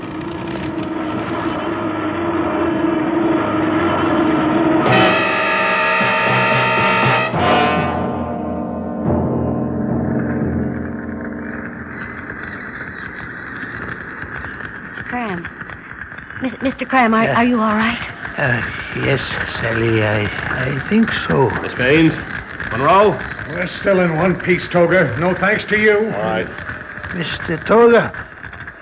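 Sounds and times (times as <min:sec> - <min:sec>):
failing airplane engine laboring during a crash landing: 0:00.0 - 0:28.8
speech: 0:16.9 - 0:28.3.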